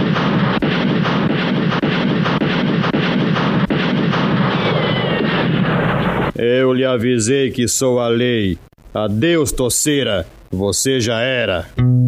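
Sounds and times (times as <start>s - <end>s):
gunfire barrage: 0.0s - 6.4s
speech: 6.4s - 12.0s.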